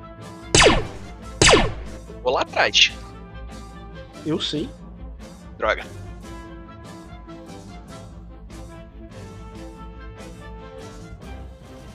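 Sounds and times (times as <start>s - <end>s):
pistol shots fired at a Jeep: 0.6s - 2.0s
speech: 2.2s - 3.1s, 4.2s - 4.8s, 5.6s - 6.0s.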